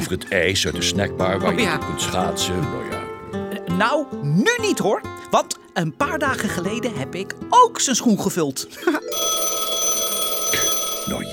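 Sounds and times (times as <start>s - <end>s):
speech: 0.1s - 3.0s, 3.8s - 9.4s
laughter: 8.7s - 9.2s
telephone ringing: 9.0s - 11.3s.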